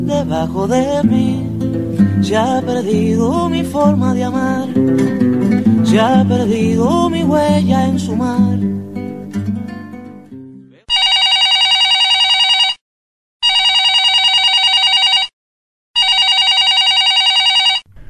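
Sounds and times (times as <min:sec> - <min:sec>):
speech: 0:00.1 - 0:08.9
telephone ringing: 0:10.9 - 0:12.8, 0:13.4 - 0:15.3, 0:16.0 - 0:17.9.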